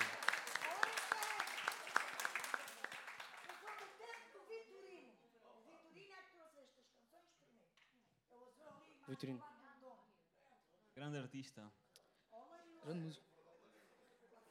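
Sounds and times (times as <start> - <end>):
audience applause: 0.0 - 4.2
speech: 9.1 - 9.6, 11.0 - 11.8, 12.8 - 13.3.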